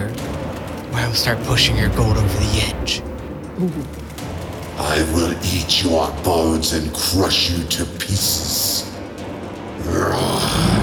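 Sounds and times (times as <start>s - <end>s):
speech: 1.0s - 4.0s, 4.8s - 8.9s
voice imitating a monster's roar: 9.8s - 10.8s.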